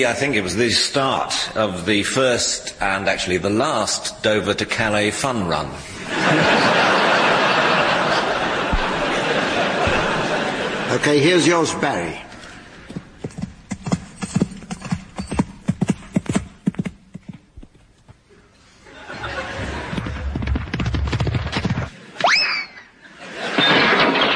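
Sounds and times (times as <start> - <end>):
speech: 0.0 - 7.2, 10.9 - 12.3
laughter: 5.9 - 11.6, 18.8 - 20.4, 22.8 - 24.2
horse hooves during show jumping round: 12.8 - 18.2, 19.8 - 21.9.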